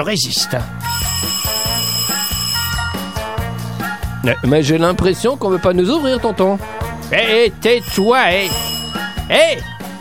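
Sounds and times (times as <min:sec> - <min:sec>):
speech: 0:00.0 - 0:01.4, 0:04.2 - 0:08.7, 0:09.3 - 0:09.7
doorbell ringing with a bright metallic jangle: 0:00.8 - 0:04.7, 0:07.6 - 0:09.9.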